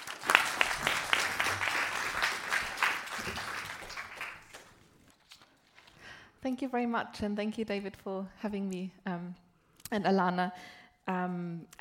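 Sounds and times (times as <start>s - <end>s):
audience clapping to welcome a speaker at an academic talk: 0.0s - 4.9s
speech: 6.4s - 11.7s.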